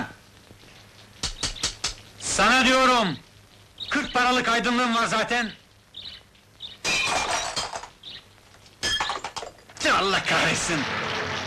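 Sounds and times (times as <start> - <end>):
speech: 2.4 - 3.3, 3.9 - 5.6, 9.9 - 11.2
faint bird chirps: 3.7 - 4.4, 5.5 - 6.8
window glass shattering: 6.8 - 8.0, 8.8 - 9.9.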